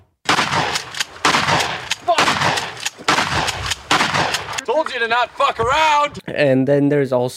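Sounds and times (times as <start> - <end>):
shotgun cocking clicks at the start of a song: 0.3 - 4.7
loud sharp percussive bursts: 0.3 - 5.5
speech: 5.1 - 7.3.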